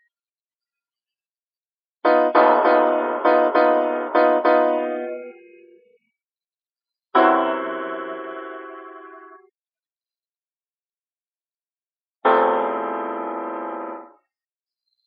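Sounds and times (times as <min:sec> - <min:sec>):
piano piece: 0:02.1 - 0:05.6, 0:07.2 - 0:09.4, 0:12.3 - 0:14.1.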